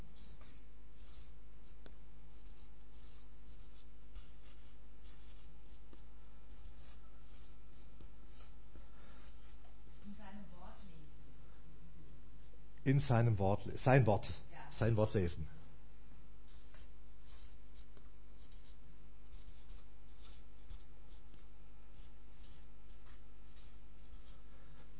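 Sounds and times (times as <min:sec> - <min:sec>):
writing on a board: 0:00.2 - 0:11.2, 0:16.5 - 0:24.9
speech: 0:12.9 - 0:15.6.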